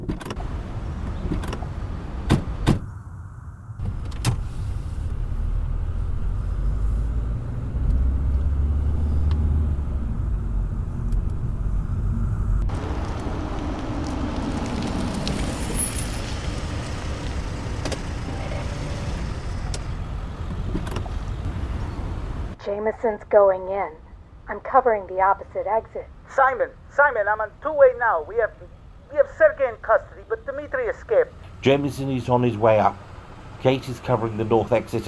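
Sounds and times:
car engine rumbling while driving around a building: 0.0 - 22.6, 30.5 - 35.0
speech: 22.6 - 33.0, 33.6 - 35.0.

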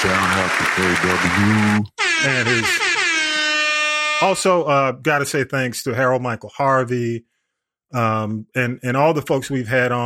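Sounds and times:
crowd applause: 0.0 - 1.8
speech: 0.8 - 3.0, 4.2 - 7.3, 7.9 - 10.0.

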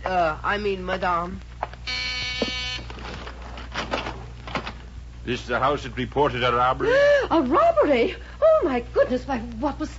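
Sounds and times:
low hum: 0.0 - 9.9
speech: 0.1 - 1.5, 5.3 - 9.9
front door buzzer: 1.8 - 3.2.

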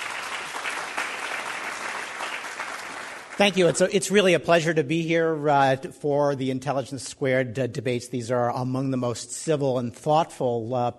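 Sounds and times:
audience applause: 0.0 - 3.8
speech: 3.4 - 10.9.

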